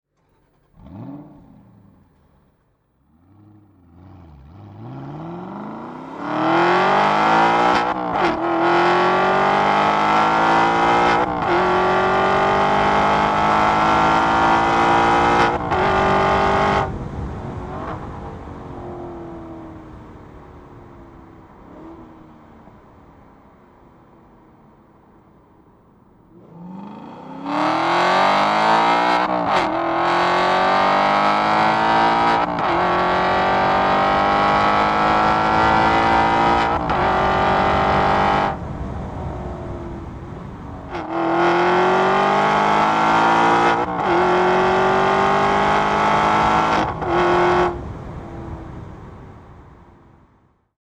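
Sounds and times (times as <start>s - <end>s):
Aston Martin V8 Vantage engine: 0.1s - 50.6s.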